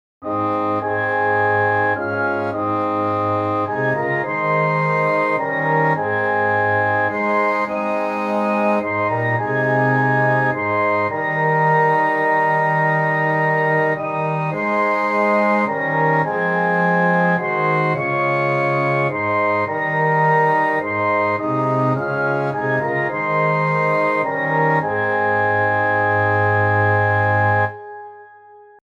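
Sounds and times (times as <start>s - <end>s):
orchestra: 0.2s - 28.0s.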